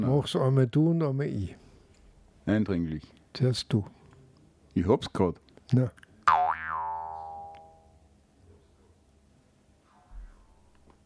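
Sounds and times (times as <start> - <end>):
speech: 0.0 - 1.6, 2.4 - 4.0, 4.8 - 6.4
magic twangy boing sound effect: 6.3 - 7.9.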